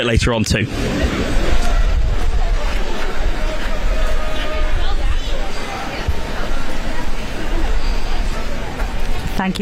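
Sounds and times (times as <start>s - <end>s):
heavy low rumble: 0.6s - 5.4s
large crowd murmur along the Mall: 0.6s - 9.5s.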